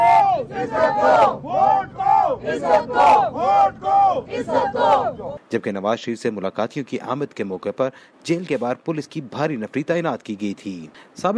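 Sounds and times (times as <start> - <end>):
party workers chanting slogans outside Adiala jail: 0.0 - 5.4
speech: 2.5 - 11.3.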